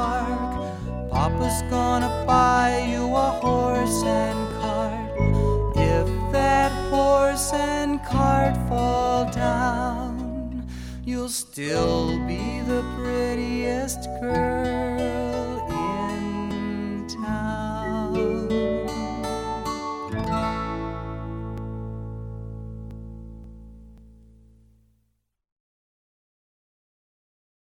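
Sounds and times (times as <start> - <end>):
lullaby song: 0.0 - 21.7.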